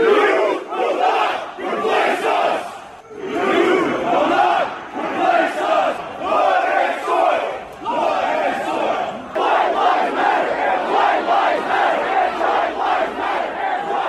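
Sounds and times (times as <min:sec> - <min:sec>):
large crowd at a rally chanting and yelling: 0:00.0 - 0:14.0.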